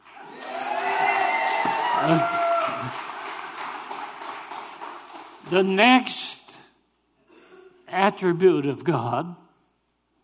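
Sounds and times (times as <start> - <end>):
audience cheering: 0.0 - 4.5
speech: 2.0 - 3.0, 5.5 - 6.3, 8.0 - 9.4.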